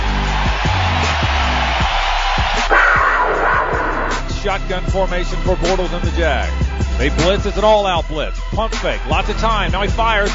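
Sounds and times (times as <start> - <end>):
stadium crowd giving standing ovation: 0.0 - 4.8
speech: 4.4 - 10.3.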